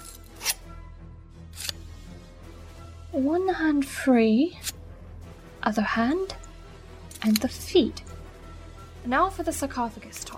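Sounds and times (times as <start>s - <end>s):
knife cutting through bonds, audio drama sound effect: 0.0s - 0.6s
speech: 3.1s - 4.8s, 5.6s - 6.4s, 7.2s - 8.1s, 9.0s - 10.3s.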